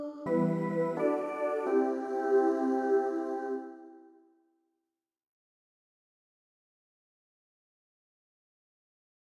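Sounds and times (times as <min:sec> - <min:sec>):
melody: 0:00.0 - 0:04.0.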